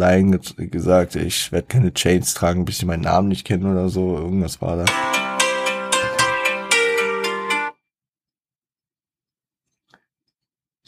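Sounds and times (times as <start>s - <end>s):
speech: 0.0s - 5.4s
alarm clock ringing: 4.9s - 7.8s.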